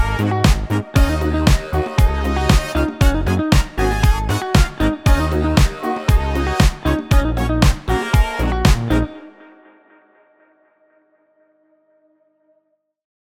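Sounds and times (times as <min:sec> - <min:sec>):
funk music: 0:00.0 - 0:09.3.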